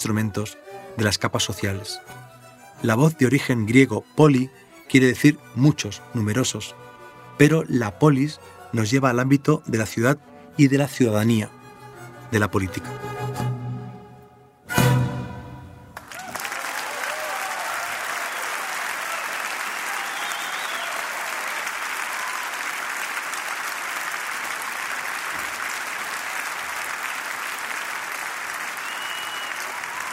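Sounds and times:
speech: 0:00.0 - 0:11.6, 0:12.3 - 0:13.5
large audience applause: 0:16.0 - 0:30.1.

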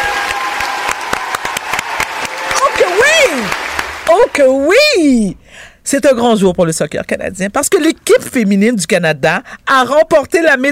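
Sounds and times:
studio audience applauding: 0:00.0 - 0:04.5
speech: 0:03.3 - 0:10.6.

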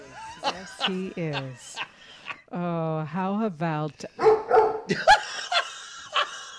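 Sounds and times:
laughter: 0:00.0 - 0:02.4, 0:04.9 - 0:06.5
speech: 0:00.4 - 0:01.9, 0:02.5 - 0:05.2
pet dog barking: 0:04.2 - 0:04.9.

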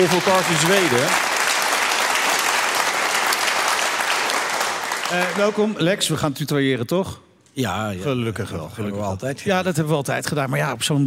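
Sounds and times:
speech: 0:00.0 - 0:01.4, 0:05.1 - 0:11.0
audience applause: 0:00.0 - 0:05.9.

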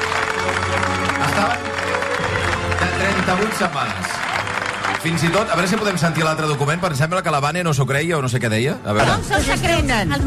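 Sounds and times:
audience applause: 0:00.0 - 0:07.8
speech: 0:02.9 - 0:04.3, 0:05.0 - 0:10.2.

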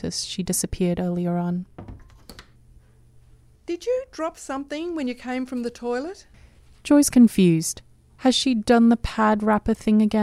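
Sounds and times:
speech: 0:00.0 - 0:01.9, 0:03.7 - 0:10.2
door closing: 0:01.8 - 0:02.5.

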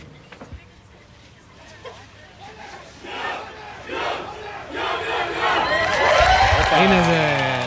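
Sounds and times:
naval graduates' traditional group shout: 0:02.6 - 0:06.5.

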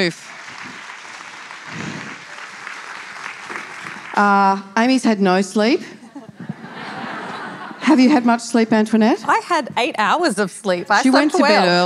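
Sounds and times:
speech: 0:00.0 - 0:00.3, 0:04.2 - 0:06.0, 0:07.9 - 0:11.8
audience applause: 0:00.0 - 0:04.6
laughter: 0:06.0 - 0:08.3.

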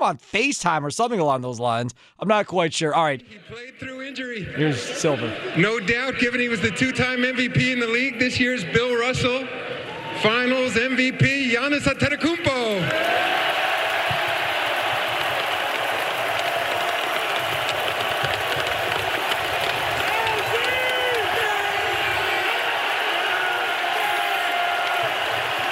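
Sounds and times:
speech: 0:00.0 - 0:13.3
huge arena crowd cheering: 0:03.5 - 0:25.7
arena crowd chanting: 0:12.8 - 0:25.7.

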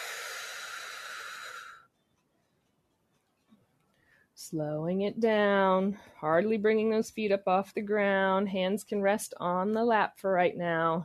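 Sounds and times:
forceful exhale during a seated breathing exercise: 0:00.0 - 0:01.8
speech: 0:04.5 - 0:11.0.

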